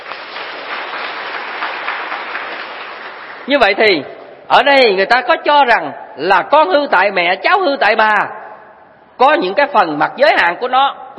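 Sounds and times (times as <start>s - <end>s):
students applauding in a classroom: 0.0s - 3.6s
speech: 3.5s - 8.4s, 9.2s - 11.1s.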